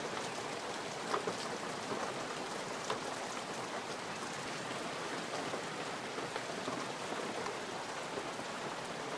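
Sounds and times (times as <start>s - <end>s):
heavy summer monsoon rain falling: 0.0s - 9.1s.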